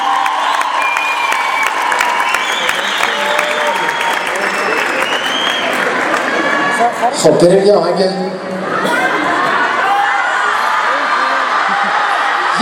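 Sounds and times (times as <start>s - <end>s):
concert audience cheering: 0.0s - 7.0s, 8.8s - 12.5s
concert audience clapping to honour an orchestra's director: 0.0s - 7.1s
speech: 7.1s - 8.4s.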